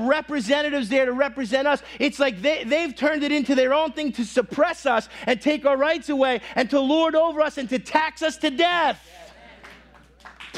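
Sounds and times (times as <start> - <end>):
speech: 0.1 - 9.2
audience clapping: 9.3 - 10.5.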